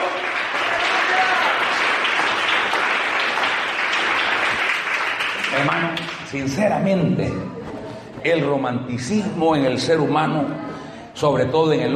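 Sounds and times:
audience applauding: 0.0s - 6.6s
speech: 5.7s - 7.6s, 8.2s - 10.6s, 11.2s - 11.9s.

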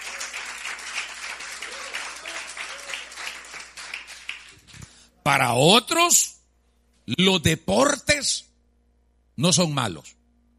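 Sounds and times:
audience applauding loudly: 0.0s - 4.8s
speech: 5.3s - 6.4s, 7.1s - 8.5s, 9.4s - 10.2s.

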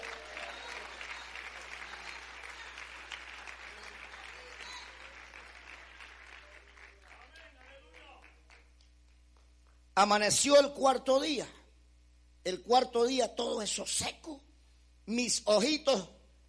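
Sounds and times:
crowd applause: 0.0s - 8.7s
speech: 10.0s - 11.6s, 12.4s - 14.5s, 15.1s - 16.2s.

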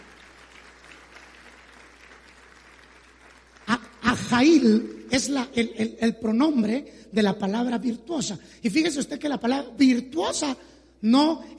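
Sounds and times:
audience applauding: 0.0s - 5.0s
speech: 4.1s - 11.5s.

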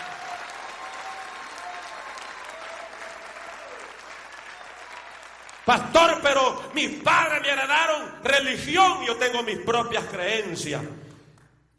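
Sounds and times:
audience applause: 0.0s - 6.6s
speech: 5.7s - 11.0s.

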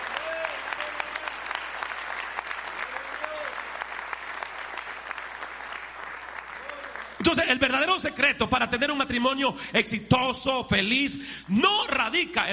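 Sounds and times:
audience applause: 0.0s - 8.0s
speech: 7.3s - 12.5s.

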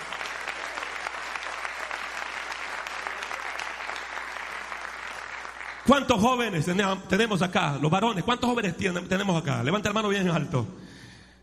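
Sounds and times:
audience clapping hands: 0.0s - 7.0s
speech: 5.9s - 10.8s.

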